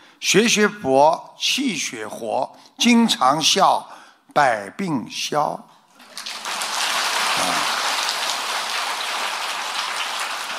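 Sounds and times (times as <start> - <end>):
speech: 0.2 - 6.3
crowd clapping: 6.0 - 10.5.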